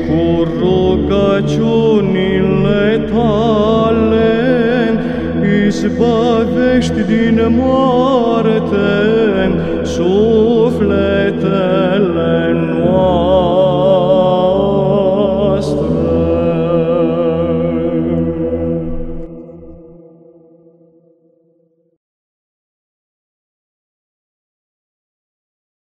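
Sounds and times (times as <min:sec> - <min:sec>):
Orthodox troparion chant in first tone: 0:00.0 - 0:20.5.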